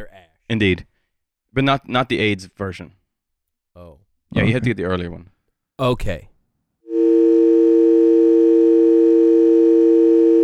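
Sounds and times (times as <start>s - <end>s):
speech: 0.0s - 0.9s, 1.5s - 3.0s, 3.8s - 6.3s, 6.9s - 7.4s
telephone tone signalling an incoming call: 6.9s - 10.4s.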